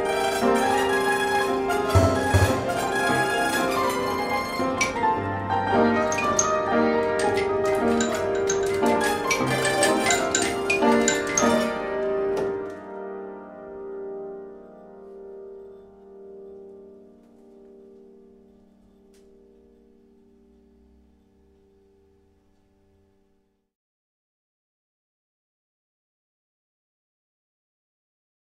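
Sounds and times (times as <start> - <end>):
orchestrion playing: 0.0 - 13.9.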